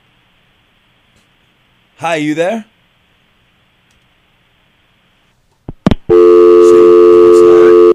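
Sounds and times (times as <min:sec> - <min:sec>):
speech: 0:02.0 - 0:02.7
steady electronic phone line tone: 0:06.1 - 0:07.9.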